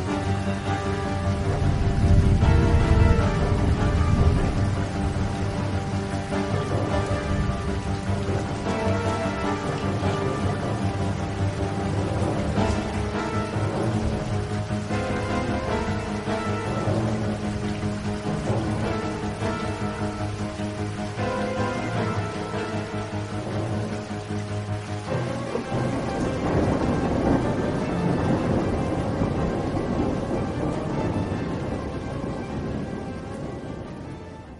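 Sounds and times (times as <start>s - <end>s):
storm music: 0.0s - 34.5s.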